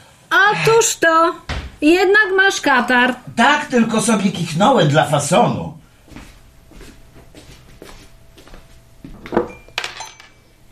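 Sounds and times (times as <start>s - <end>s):
speech: 0.5s - 5.8s
teacups and dishes clinking and rattling: 9.3s - 10.4s.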